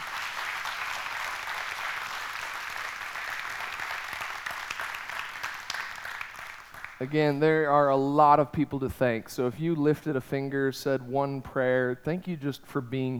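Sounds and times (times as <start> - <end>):
audience applause: 0.0 - 7.4
speech: 7.0 - 13.1.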